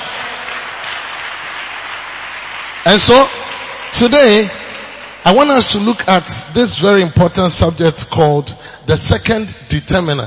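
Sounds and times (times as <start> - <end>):
audience clapping: 0.0 - 6.1
speech: 2.8 - 4.6, 5.2 - 10.2.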